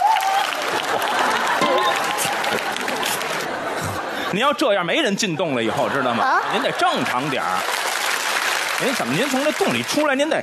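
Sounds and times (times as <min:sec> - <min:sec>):
audience applause: 0:00.0 - 0:04.1, 0:06.3 - 0:10.4
laughter: 0:00.6 - 0:08.1
speech: 0:04.3 - 0:07.8, 0:08.8 - 0:10.4.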